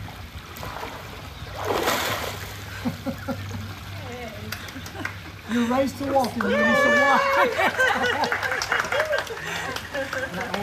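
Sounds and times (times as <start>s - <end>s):
water splash of person dunked under water in a baptism: 0.0s - 7.7s
speech: 5.5s - 8.5s
laughter: 6.5s - 10.6s.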